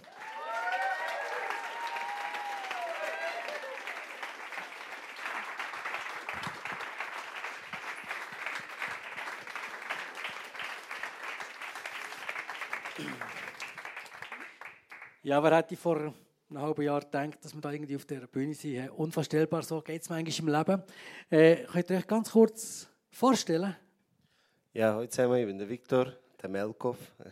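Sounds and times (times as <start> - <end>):
audience applause: 0.0 - 15.2
speech: 15.3 - 23.8, 24.8 - 27.2.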